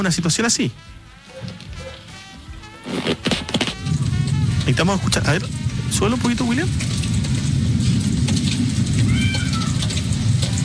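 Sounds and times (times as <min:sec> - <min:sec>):
speech: 0:00.0 - 0:01.0, 0:04.7 - 0:07.0
rain falling before a thunderstorm: 0:00.0 - 0:10.6
constant low rumble: 0:03.8 - 0:09.2.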